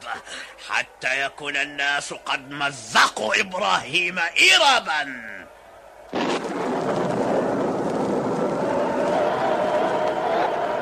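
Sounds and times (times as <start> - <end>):
speech: 0.1 - 5.4
Tower of Babel collapsing onto people, radio drama effect: 6.1 - 10.1.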